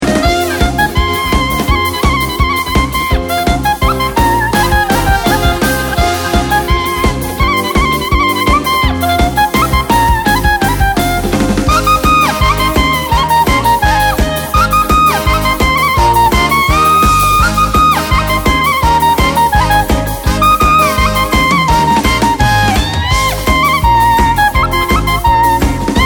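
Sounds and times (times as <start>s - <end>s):
instrumental joyful nigun: 0.0s - 26.0s.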